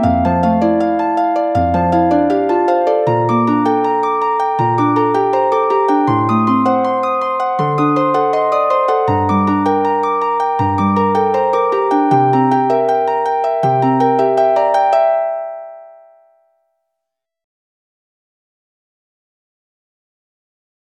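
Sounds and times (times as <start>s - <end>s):
backing track: 0.0s - 15.1s.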